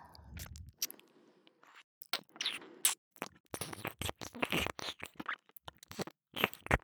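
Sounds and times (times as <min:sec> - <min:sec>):
ear licking loop: 0:00.4 - 0:01.0, 0:02.0 - 0:06.8.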